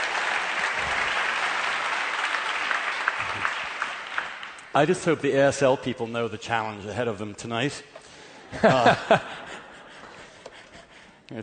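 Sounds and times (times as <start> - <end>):
audience clapping: 0.0 - 5.2
speech: 4.8 - 9.6
laughter: 8.2 - 11.2.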